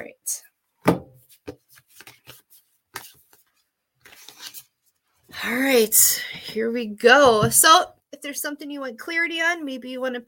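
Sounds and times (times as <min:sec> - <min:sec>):
speech: 0:00.0 - 0:00.5, 0:05.4 - 0:10.2
Sacred Forest oracle cards by Denise Lynn being drawn and shuffled: 0:01.2 - 0:04.8.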